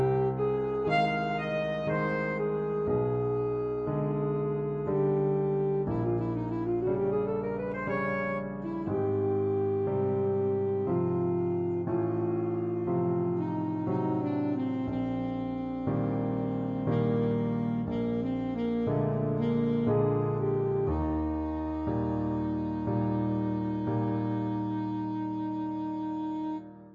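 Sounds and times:
alto saxophone playing a waltz: 0:00.0 - 0:26.9.

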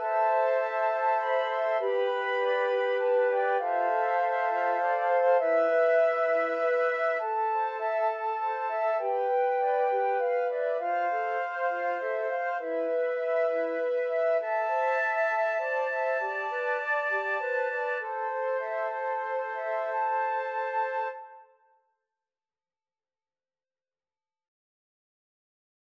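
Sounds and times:
flute choir: 0:00.0 - 0:21.7.

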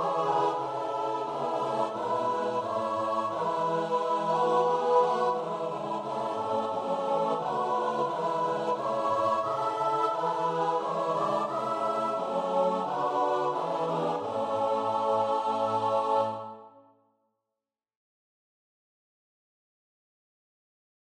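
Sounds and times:
choir singing: 0:00.0 - 0:16.8.

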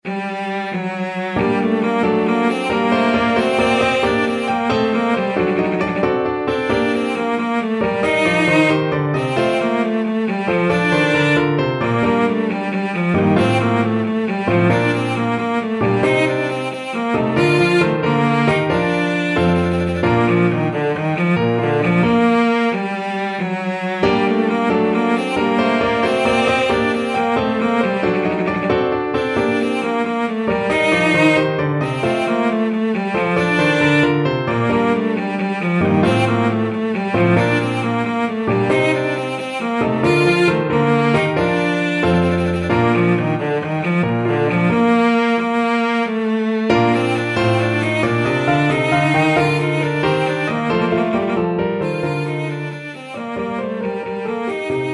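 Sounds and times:
violoncello: 0:00.0 - 0:54.9.

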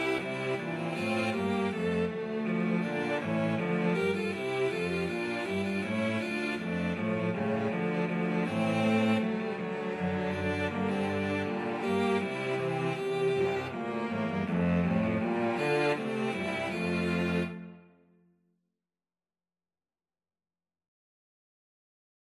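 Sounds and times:
cello trio playing a hornpipe: 0:00.0 - 0:17.8.

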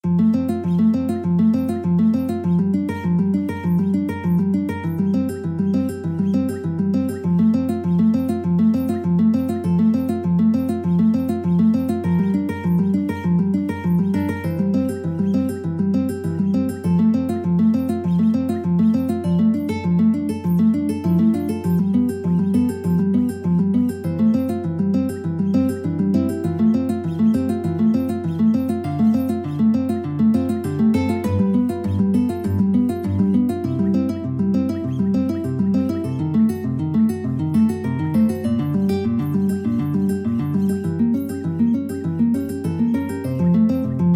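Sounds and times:
guitar duet: 0:00.0 - 0:44.1.

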